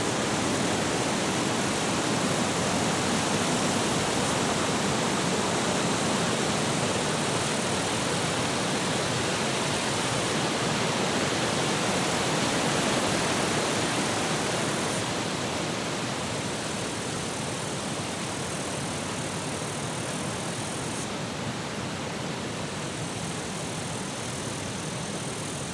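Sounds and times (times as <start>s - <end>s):
light insects in a summer forest in Australia: 0.0s - 25.7s
summer wind in forest trees in Australia: 0.0s - 25.7s.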